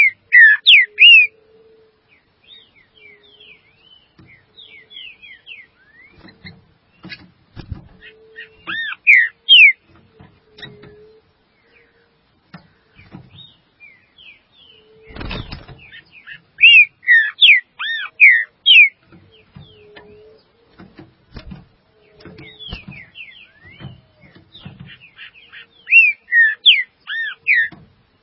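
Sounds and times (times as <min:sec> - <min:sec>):
green-winged saltator whistling: 0:00.0 - 0:01.4, 0:04.6 - 0:06.2, 0:08.0 - 0:09.8, 0:14.7 - 0:19.0, 0:22.4 - 0:27.7.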